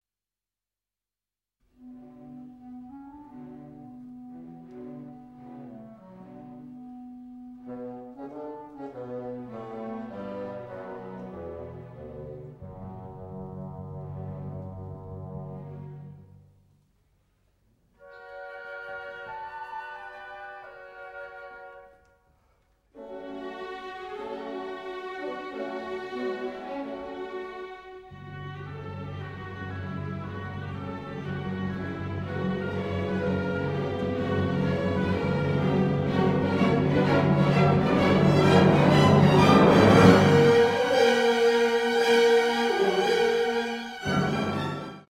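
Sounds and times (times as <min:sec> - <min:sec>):
fast cello concerto movement in B minor: 0:01.8 - 0:16.8, 0:18.0 - 0:22.2, 0:23.0 - 0:45.0.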